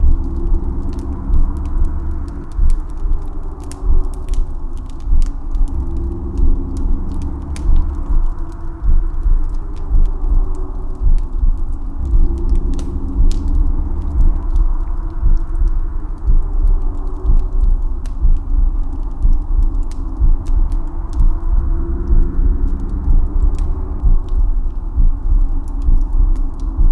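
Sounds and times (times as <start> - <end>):
dark combustion effect: 0.0 - 26.9.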